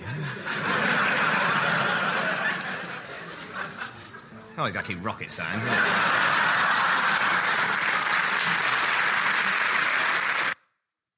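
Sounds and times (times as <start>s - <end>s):
laughter: 0.0s - 4.3s, 5.3s - 10.1s
speech: 4.6s - 6.3s
applause: 6.5s - 10.6s.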